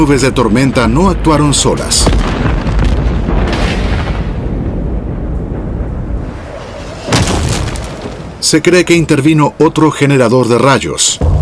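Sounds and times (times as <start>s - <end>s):
speech: 0.0s - 2.6s, 8.4s - 11.4s
volcanic eruption rumbling: 0.0s - 10.2s.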